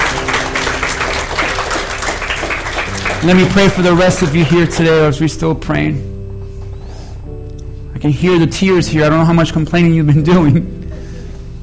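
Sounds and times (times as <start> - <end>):
audience applause: 0.0 - 4.9
speech: 3.2 - 6.1, 8.0 - 10.8.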